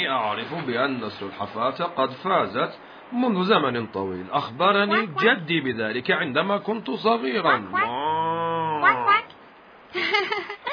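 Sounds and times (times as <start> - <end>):
speech: 0.0 - 8.0
bull mooing: 7.5 - 9.3.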